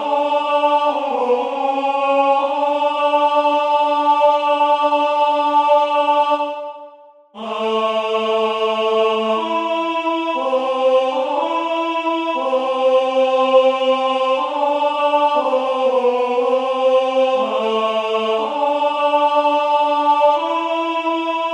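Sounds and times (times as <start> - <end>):
alto choir voices singing a verse: 0.0 - 21.5.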